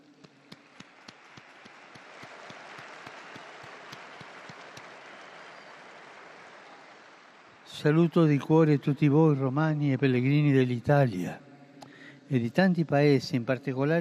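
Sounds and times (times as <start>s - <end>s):
rhythmic clapping in unison: 0.0s - 7.7s
large crowd applause: 0.0s - 9.0s
speech: 7.8s - 11.4s, 12.3s - 13.9s.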